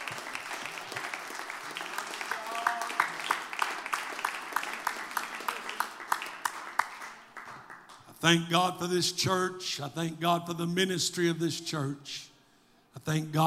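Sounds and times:
audience clapping hands: 0.0 - 8.1
speech: 8.2 - 12.3, 13.0 - 13.4.

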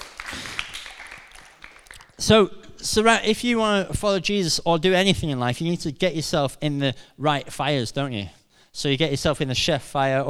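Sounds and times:
group of people clapping: 0.0 - 2.2
speech: 2.2 - 10.2.

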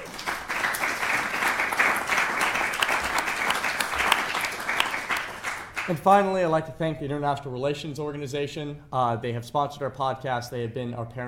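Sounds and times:
audience round of applause: 0.0 - 5.9
speech: 5.9 - 11.2.

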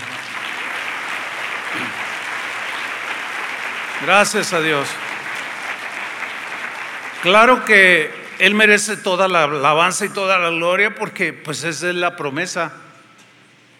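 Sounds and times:
audience applause: 0.0 - 9.3
speech: 4.0 - 5.0, 7.2 - 12.8.

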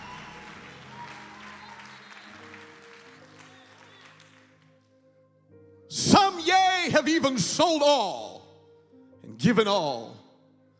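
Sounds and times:
crowd clapping: 0.0 - 4.8
organ-like drone: 0.0 - 4.8
speech: 6.1 - 8.3, 9.4 - 10.2.

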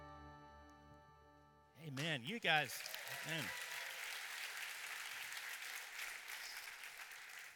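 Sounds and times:
speech: 1.8 - 3.6
crowd applauding: 1.9 - 7.5.

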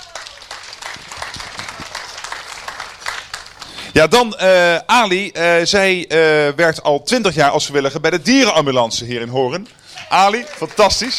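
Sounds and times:
applause: 0.0 - 4.0, 9.6 - 11.1
speech: 4.0 - 11.1.

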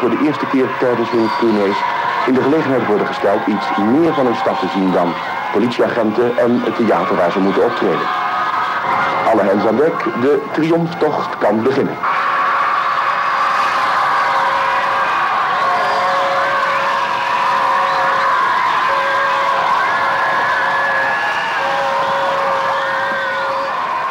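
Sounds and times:
speech: 0.0 - 8.3, 9.3 - 12.3
crowd of fans screaming: 0.0 - 24.0
steady whistle-like tone: 15.7 - 24.0.

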